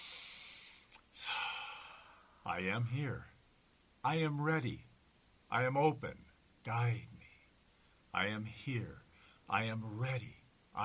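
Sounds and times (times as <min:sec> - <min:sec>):
inhaled breath during guided meditation: 0:00.0 - 0:02.4
speech: 0:02.5 - 0:03.3, 0:04.0 - 0:04.9, 0:05.5 - 0:07.2, 0:08.1 - 0:10.8.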